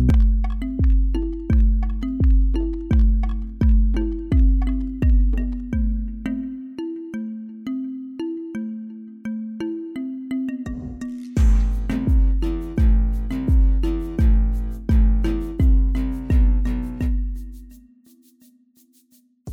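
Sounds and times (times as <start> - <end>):
cumbia music: 0.1 - 6.7, 9.7 - 18.5.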